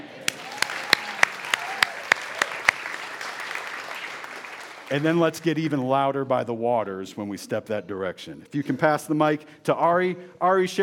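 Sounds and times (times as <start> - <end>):
church audience applauding: 0.2 - 5.3
speech: 4.9 - 10.8.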